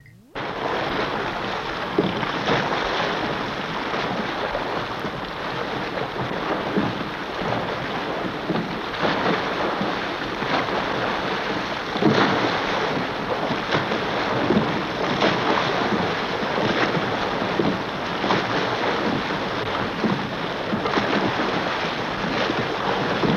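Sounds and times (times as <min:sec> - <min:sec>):
bow washing up and down: 0:00.0 - 0:23.3.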